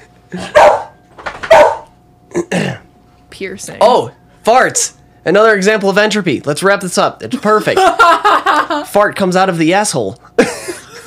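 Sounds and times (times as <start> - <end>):
speech: 0.3 - 0.8, 3.4 - 10.6
dog barking on command: 0.5 - 1.9
laughter: 7.3 - 8.9, 10.3 - 11.0.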